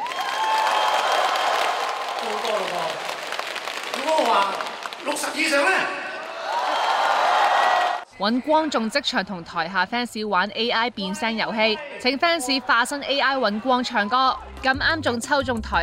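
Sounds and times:
large concert crowd applause: 0.0 - 8.0
speech: 4.4 - 6.0, 8.2 - 15.8.

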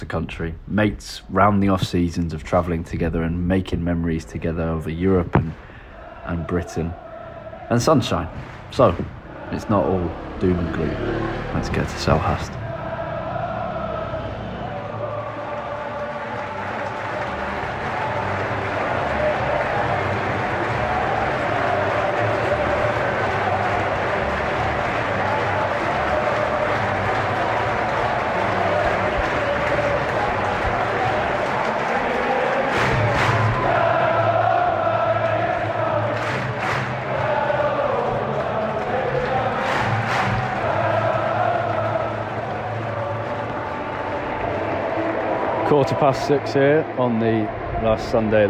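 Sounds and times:
speech: 0.0 - 5.7, 6.3 - 7.0, 7.7 - 12.6, 46.0 - 48.4
people cheering: 0.0 - 48.4
people shouting: 5.9 - 7.8, 12.6 - 48.4
football crowd murmur leaving stadium: 8.3 - 48.4.

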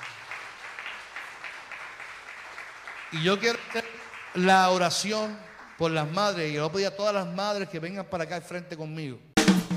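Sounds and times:
audience applause: 0.0 - 6.4
speech: 3.1 - 9.6.

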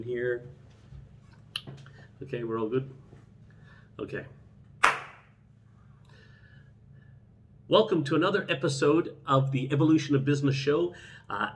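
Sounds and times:
speech: 0.0 - 0.6, 2.2 - 3.0, 4.0 - 4.4, 7.7 - 11.5
single hand clap for audio sync: 4.8 - 5.3.

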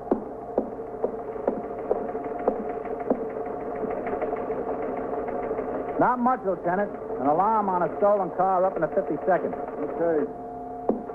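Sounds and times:
teletype machine running: 0.1 - 10.3
speech: 6.0 - 10.4.

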